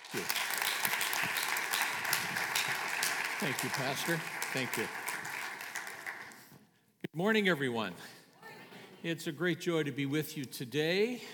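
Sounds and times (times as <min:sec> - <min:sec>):
church congregation applauding a pastor at an ordination service: 0:00.0 - 0:06.5
speech: 0:03.4 - 0:05.0, 0:07.2 - 0:08.1, 0:09.0 - 0:11.3.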